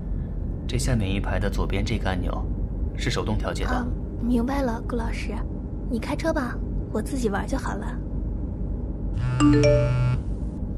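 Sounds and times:
steady low hum: 0.0 - 10.7
speech: 0.7 - 8.0, 9.2 - 10.1
mobile phone ringtone: 9.2 - 10.2.

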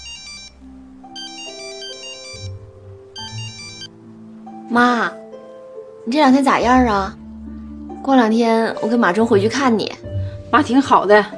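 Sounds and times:
phone ringtone: 0.0 - 3.9
speech: 4.7 - 5.2, 6.0 - 7.2, 8.0 - 9.8, 10.5 - 11.3.

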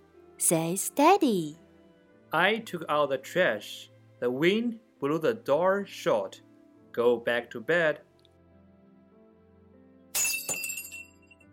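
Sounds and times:
speech: 0.4 - 1.6, 2.3 - 8.1
glass Christmas ornaments breaking: 10.1 - 11.4
tinkling scatter of glass shards: 10.2 - 11.3.

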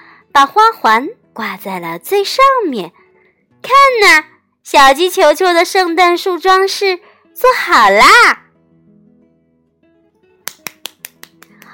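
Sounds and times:
speech: 0.4 - 3.0, 3.6 - 8.4
hands clapping: 10.4 - 11.7.

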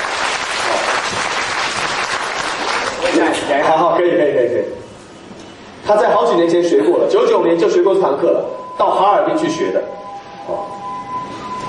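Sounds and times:
audience applause: 0.0 - 3.2
speech: 3.2 - 4.8, 5.9 - 9.9.

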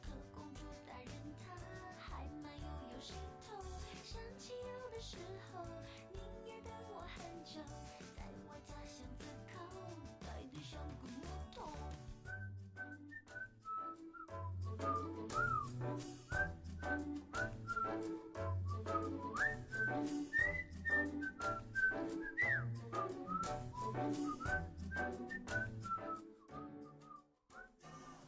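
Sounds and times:
bouncy instrumental backing with bass line and beats: 0.0 - 27.2
whistled melody: 11.8 - 28.2.

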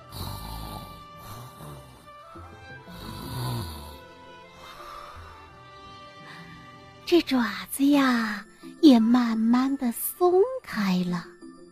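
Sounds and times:
voice imitating a cat snoring: 0.0 - 4.1
speech: 7.1 - 11.3.

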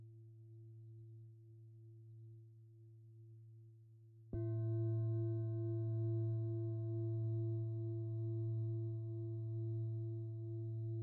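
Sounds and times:
Tibetan singing bowl struck: 4.4 - 10.9.

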